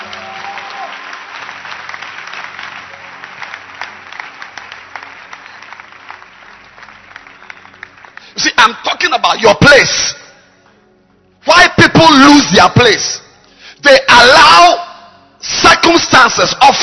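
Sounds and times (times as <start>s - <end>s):
audience clapping and applauding: 0.0s - 9.3s
speech: 8.6s - 10.2s, 11.5s - 13.2s, 13.8s - 14.8s, 15.8s - 16.8s.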